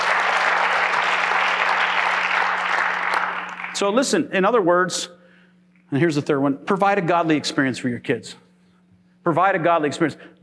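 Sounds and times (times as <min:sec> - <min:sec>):
audience clapping: 0:00.0 - 0:04.0
speech: 0:03.8 - 0:05.2, 0:05.9 - 0:08.4, 0:09.2 - 0:10.4.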